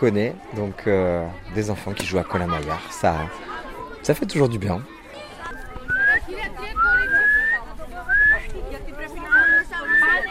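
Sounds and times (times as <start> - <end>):
speech: 0.0 - 5.6
murmur of voices: 0.0 - 10.2
person whistling to guide someone: 6.8 - 8.4.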